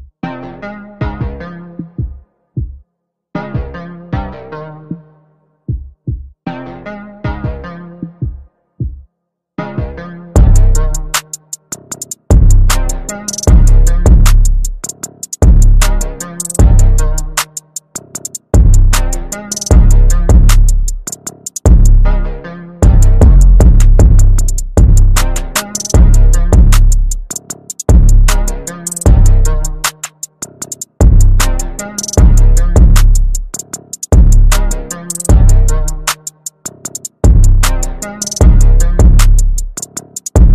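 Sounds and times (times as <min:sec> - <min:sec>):
instrumental music: 0:00.0 - 0:40.5.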